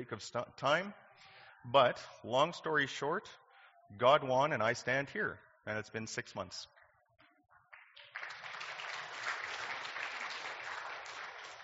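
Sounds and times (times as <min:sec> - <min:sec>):
speech: 0:00.0 - 0:06.7
audience clapping: 0:07.7 - 0:11.6.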